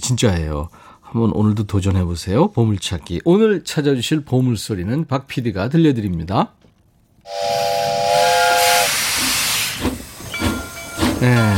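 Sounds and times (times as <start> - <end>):
speech: 0.1 - 7.7, 11.2 - 11.5
train steam whistle: 7.3 - 11.5.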